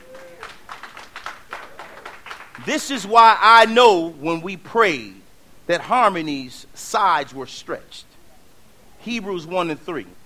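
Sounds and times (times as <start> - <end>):
congregation clapping hands in a church service: 0.0 - 3.5
speech: 2.6 - 8.1, 9.0 - 10.2.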